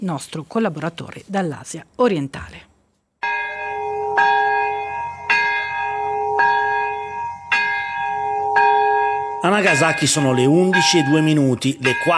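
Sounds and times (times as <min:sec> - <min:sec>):
speech: 0:00.0 - 0:02.7, 0:09.4 - 0:12.1
both bells of Urakami Cathedral in Nagasaki ringing at atomic bombing commemoration: 0:03.2 - 0:12.1.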